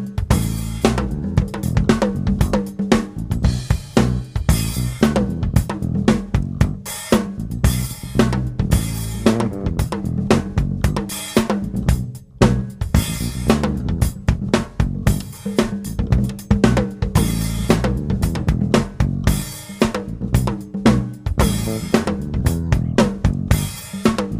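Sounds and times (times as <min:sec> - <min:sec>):
backing riff: 0:00.3 - 0:24.3.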